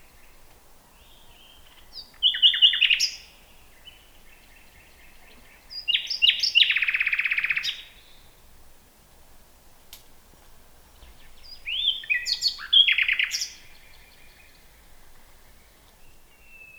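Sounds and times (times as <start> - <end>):
common nightingale Luscinia megarhynchos singing: 1.0 - 8.3, 11.0 - 16.7.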